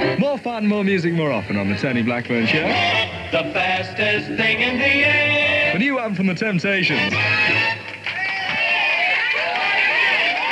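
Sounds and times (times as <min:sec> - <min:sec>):
speech: 0:00.2 - 0:07.6
large crowd applauding: 0:07.7 - 0:10.4.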